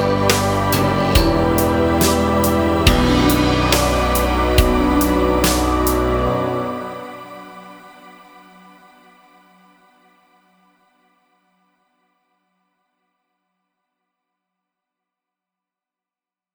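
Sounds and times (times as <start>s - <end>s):
backing track: 0.0s - 7.5s.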